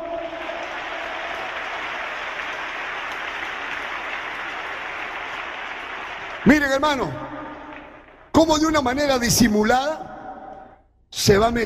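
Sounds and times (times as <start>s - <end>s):
audience clapping: 0.0s - 9.2s
speech: 6.4s - 7.3s, 8.4s - 10.1s, 11.2s - 11.6s.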